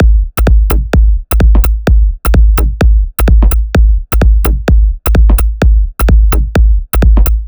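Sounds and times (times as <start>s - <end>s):
drum kit at 128 BPM: 0.0s - 7.4s.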